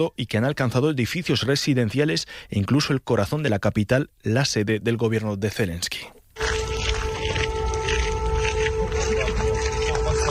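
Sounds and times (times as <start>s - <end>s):
speech: 0.0s - 6.2s
air raid siren wailing at night: 6.4s - 10.3s
low rumbling: 6.4s - 10.3s.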